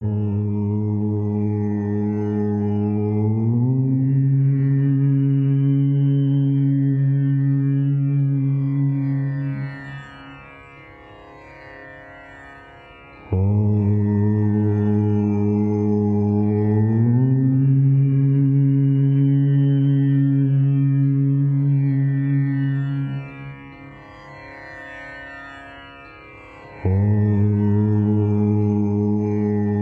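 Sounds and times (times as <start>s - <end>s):
mantra chanting: 0.0s - 9.7s, 13.3s - 23.8s, 26.8s - 29.7s.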